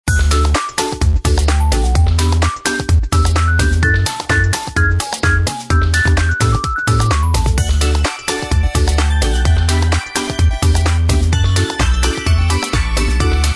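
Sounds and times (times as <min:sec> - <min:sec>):
background music: 0:00.1 - 0:13.5.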